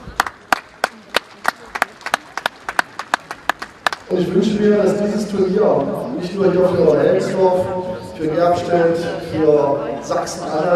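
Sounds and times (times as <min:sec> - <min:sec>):
sparse round of hand claps: 0:00.1 - 0:04.1
speech: 0:04.1 - 0:10.7.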